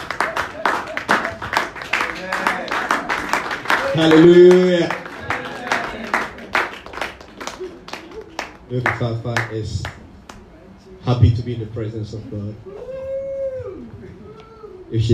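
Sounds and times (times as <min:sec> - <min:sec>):
audience applauding: 0:00.0 - 0:10.4
speech: 0:04.0 - 0:05.0, 0:08.7 - 0:10.0, 0:11.1 - 0:12.8, 0:14.9 - 0:15.1.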